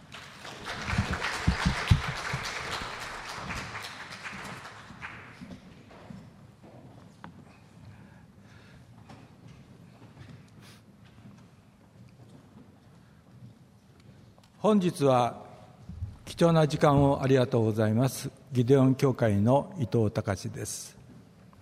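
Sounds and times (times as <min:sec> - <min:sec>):
small audience clapping: 0:00.0 - 0:05.6
speech: 0:14.6 - 0:15.4, 0:16.4 - 0:21.0.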